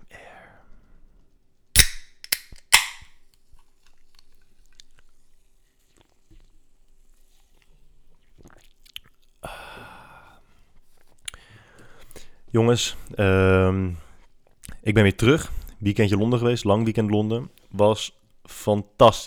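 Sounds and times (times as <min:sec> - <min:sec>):
can of cola opening: 0:01.8 - 0:03.0
speech: 0:12.5 - 0:14.0, 0:14.8 - 0:19.2.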